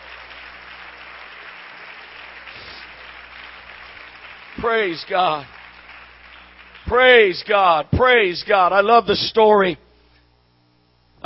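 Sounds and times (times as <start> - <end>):
audience clapping: 0.0 - 7.8
speech: 4.6 - 5.6, 6.9 - 9.8.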